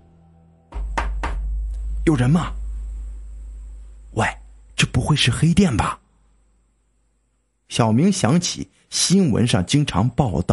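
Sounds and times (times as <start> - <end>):
knocking on a door: 0.7 - 1.5
low rumble: 0.8 - 7.3
speech: 2.1 - 2.6, 4.2 - 6.0, 7.7 - 10.5.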